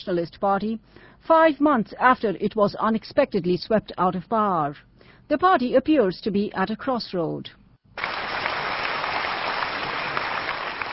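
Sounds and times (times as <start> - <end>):
speech: 0.0 - 8.1
crowd applauding at a party meeting: 8.0 - 10.9.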